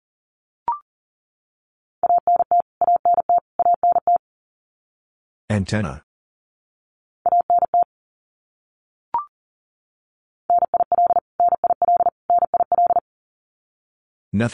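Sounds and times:
Morse code beeps at 40 wpm: 0:02.0 - 0:04.2, 0:07.3 - 0:07.9, 0:10.5 - 0:13.0
speech: 0:05.5 - 0:06.1, 0:14.3 - 0:14.5.

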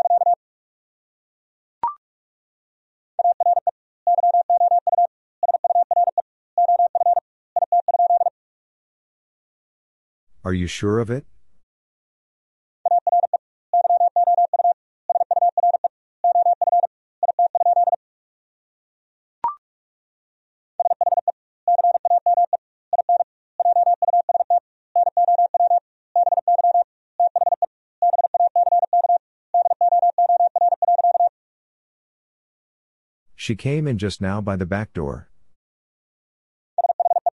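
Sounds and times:
Morse code tones at 45 wpm: 0:00.0 - 0:00.4, 0:03.2 - 0:08.3, 0:12.9 - 0:18.0, 0:20.8 - 0:31.3
speech: 0:10.4 - 0:11.3, 0:33.5 - 0:35.3.

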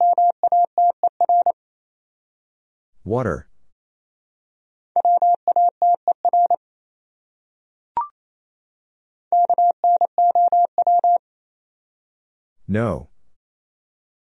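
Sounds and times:
Morse code beeps at 28 words per minute: 0:00.0 - 0:01.6, 0:05.0 - 0:06.6, 0:09.3 - 0:11.2
speech: 0:03.0 - 0:03.5, 0:12.7 - 0:13.1.

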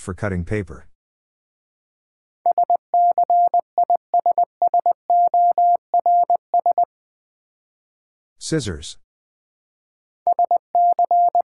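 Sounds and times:
speech: 0:00.0 - 0:00.9, 0:08.4 - 0:09.0
Morse code tones at about 20 words per minute: 0:02.5 - 0:06.9, 0:10.3 - 0:11.4.

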